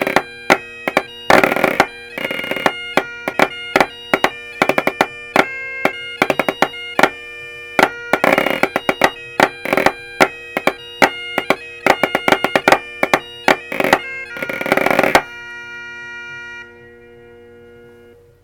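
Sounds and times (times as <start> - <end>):
snare drum drone: 0.0 - 7.2, 7.8 - 15.3.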